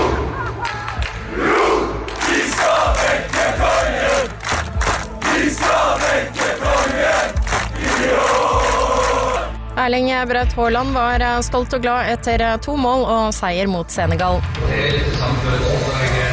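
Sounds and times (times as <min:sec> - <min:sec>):
football fans cheering and chanting in the street: 0:00.0 - 0:09.6
thumping beats: 0:02.1 - 0:08.9
speech: 0:09.8 - 0:16.2.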